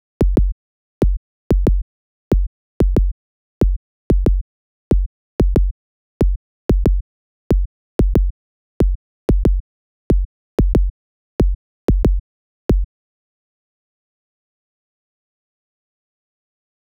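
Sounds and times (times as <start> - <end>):
fruity kick drum: 0.2 - 12.9.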